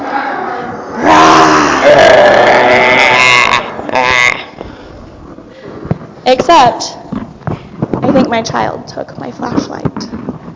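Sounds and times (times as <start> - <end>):
people growling like a bear: 0.0 - 4.6
speech: 6.3 - 6.9, 8.3 - 9.8.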